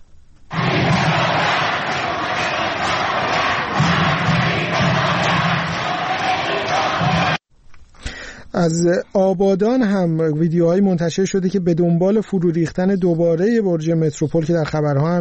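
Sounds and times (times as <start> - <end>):
protest crowd chanting slogans: 0.5 - 7.4
speech: 8.6 - 15.1.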